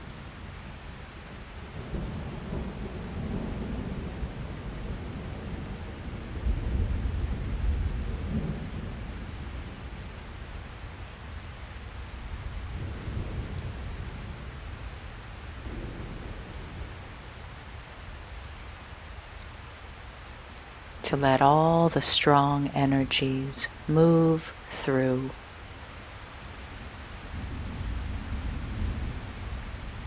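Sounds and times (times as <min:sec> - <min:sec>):
steady rain: 0:00.0 - 0:30.0
low rolling thunder: 0:01.8 - 0:09.3, 0:15.6 - 0:17.0, 0:26.8 - 0:30.0
speech: 0:21.1 - 0:25.4.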